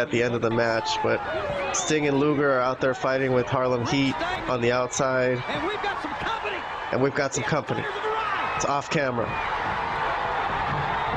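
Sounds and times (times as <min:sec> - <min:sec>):
speech: 0:00.0 - 0:05.9, 0:06.9 - 0:08.0, 0:08.6 - 0:09.6
large wrestling arena crowd cheering: 0:00.0 - 0:11.1.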